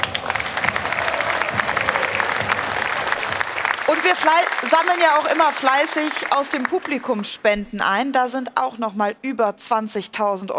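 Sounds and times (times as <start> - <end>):
audience clapping: 0.0 - 7.4
speech: 4.0 - 10.5.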